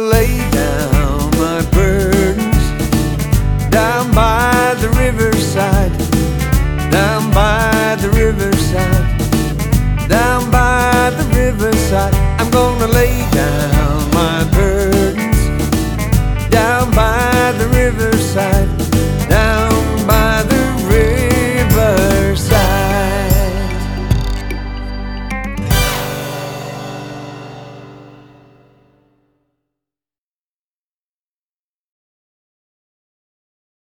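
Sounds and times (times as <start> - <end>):
ukulele tune: 0.2 - 28.6.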